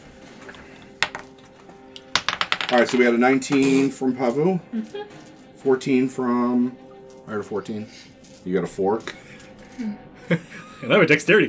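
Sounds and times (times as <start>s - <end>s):
dice rolling through wooden dice tower: 1.0s - 1.4s, 2.0s - 3.9s
speech: 2.7s - 9.2s, 9.8s - 11.4s
laughter: 4.7s - 5.3s, 9.8s - 11.2s.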